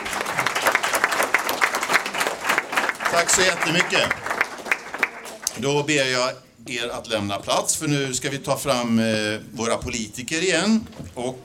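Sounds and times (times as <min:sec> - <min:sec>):
audience applause: 0:00.0 - 0:05.5
speech: 0:03.2 - 0:04.4, 0:05.6 - 0:11.4.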